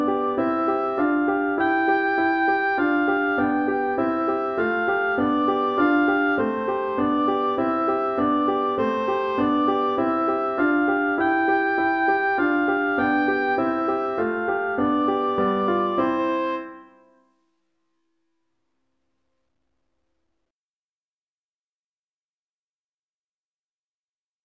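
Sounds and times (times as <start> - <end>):
oboe playing a humming song: 0.0 - 17.1.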